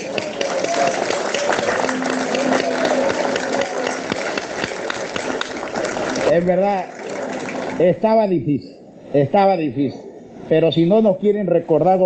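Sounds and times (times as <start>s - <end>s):
audience applause: 0.0s - 7.8s
speech: 6.3s - 7.0s, 7.8s - 12.0s.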